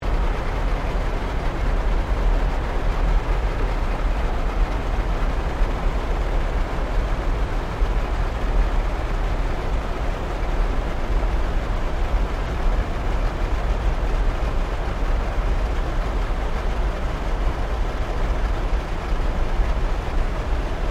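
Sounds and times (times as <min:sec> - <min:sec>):
created ambience of specular flames burning: 0:00.0 - 0:20.8.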